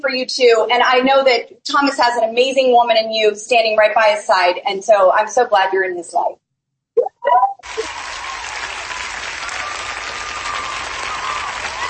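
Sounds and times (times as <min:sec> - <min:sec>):
speech: 0:00.1 - 0:06.4, 0:07.0 - 0:08.2
audience applause: 0:07.6 - 0:11.8.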